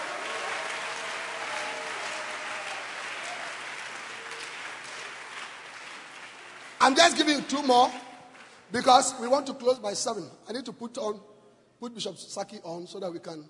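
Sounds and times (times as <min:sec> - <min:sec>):
audience clapping hands: 0:00.0 - 0:09.0
speech: 0:06.8 - 0:08.0, 0:08.7 - 0:13.4.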